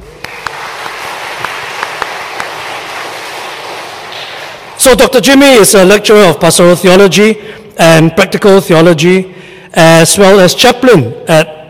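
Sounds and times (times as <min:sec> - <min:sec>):
church congregation applauding to welcome a guest speaker: 0:00.0 - 0:05.5
speech: 0:04.8 - 0:11.6.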